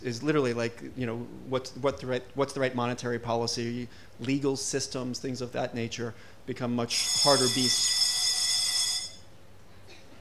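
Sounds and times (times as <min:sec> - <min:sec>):
speech: 0:00.0 - 0:08.2
quiet hum: 0:00.0 - 0:10.1
alarm buzzer going off: 0:06.9 - 0:09.2.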